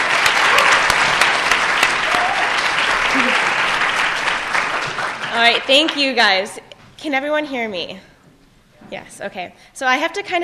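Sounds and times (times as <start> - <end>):
audience applause welcoming a speaker at a student leadership conference: 0.0 - 6.5
speech: 5.4 - 8.1, 8.9 - 10.4.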